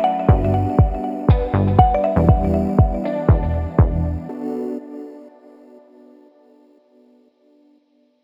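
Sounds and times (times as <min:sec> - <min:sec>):
upbeat fashion luxury music: 0:00.0 - 0:04.8.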